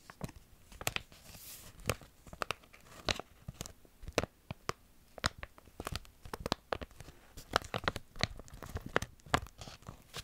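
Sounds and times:
brief soft hiss: 0.0 - 8.6
sharp irregular crinkling crackles: 0.0 - 10.2.

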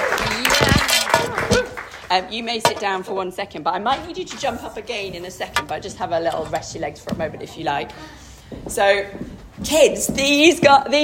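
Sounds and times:
small audience clapping: 0.0 - 2.2
voices calling out and chattering: 0.0 - 9.0
speech: 2.1 - 11.0.

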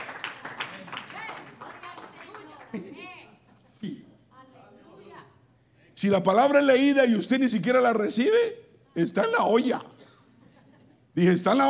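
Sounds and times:
audience applauding: 0.0 - 2.8
laughter: 2.4 - 3.8, 10.3 - 11.2
speech: 6.0 - 9.9, 11.2 - 11.6
man speaking loudly: 6.0 - 10.0, 11.2 - 11.6.

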